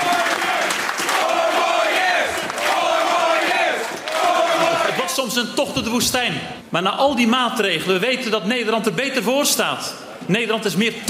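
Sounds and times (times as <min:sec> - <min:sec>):
crowd cheering at election night: 0:00.0 - 0:05.2
speech: 0:05.2 - 0:11.0.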